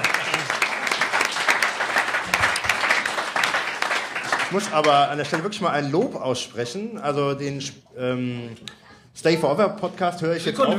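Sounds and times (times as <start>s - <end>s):
applause: 0.0s - 6.0s
speech: 4.5s - 10.7s.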